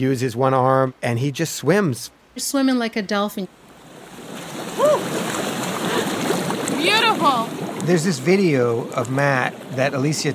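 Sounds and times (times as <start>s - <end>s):
speech: 0.0s - 3.6s, 6.8s - 10.3s
bubbling churning water from a hot tub beside a pool: 3.7s - 10.3s.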